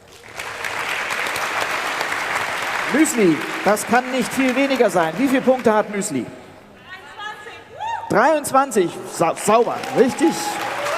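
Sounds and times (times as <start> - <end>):
audience applause after a contestant's score is announced: 0.0 - 6.2, 9.2 - 10.9
speech: 2.9 - 6.4, 8.1 - 10.6.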